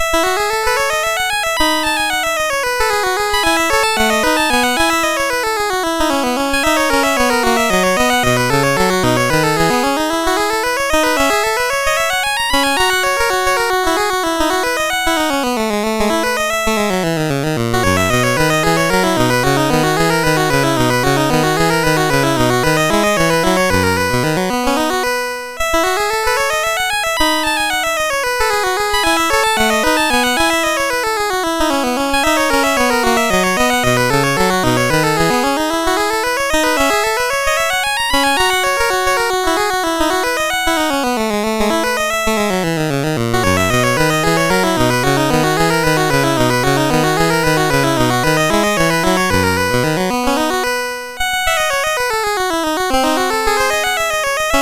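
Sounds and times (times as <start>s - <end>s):
courante chiptune music on MOS6581R4 chip: 0.0s - 54.5s.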